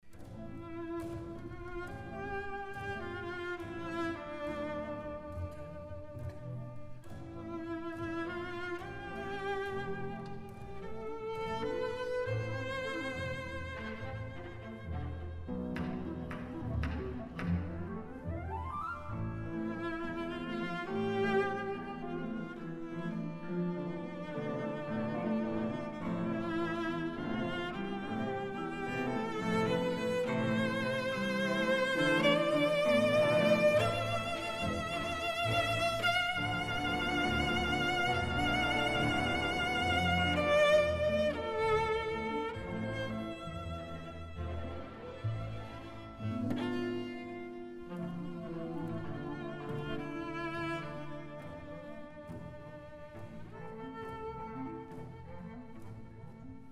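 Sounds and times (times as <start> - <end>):
cello concerto: 0.0 - 56.6.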